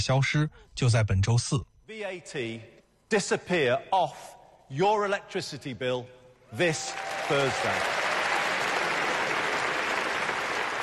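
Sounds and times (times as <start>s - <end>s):
speech: 0.0s - 8.0s
crowd applause: 6.8s - 10.8s.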